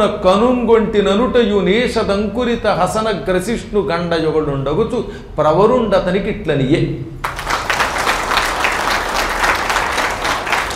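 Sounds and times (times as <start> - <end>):
speech: 0.0 - 7.2
audience applause after a Telugu verse recitation: 7.2 - 10.7.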